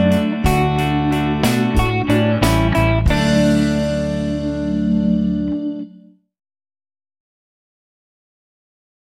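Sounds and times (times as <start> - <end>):
guitar playing: 0.0 - 6.2.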